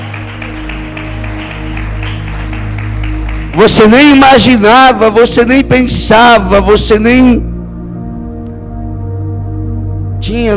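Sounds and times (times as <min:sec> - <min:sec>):
audience applause: 0:00.0 - 0:03.9
speech: 0:03.6 - 0:07.5, 0:10.3 - 0:10.5.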